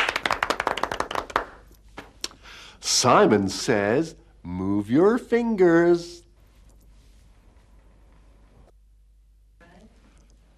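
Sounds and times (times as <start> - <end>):
hands clapping: 0.0 - 2.4
speech: 2.8 - 6.2.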